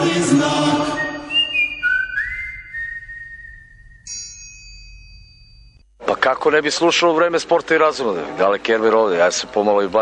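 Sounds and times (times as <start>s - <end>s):
person whistling: 0.7s - 4.1s
speech: 6.3s - 10.0s.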